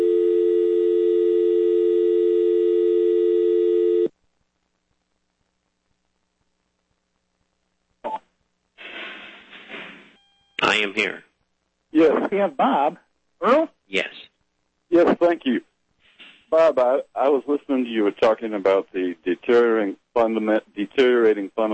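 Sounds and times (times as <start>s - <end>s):
telephone dial tone on call line: 0.0s - 4.1s
noisy line hiss: 8.8s - 10.2s
speech: 10.9s - 11.3s, 11.9s - 14.3s, 14.9s - 15.7s, 16.5s - 21.7s.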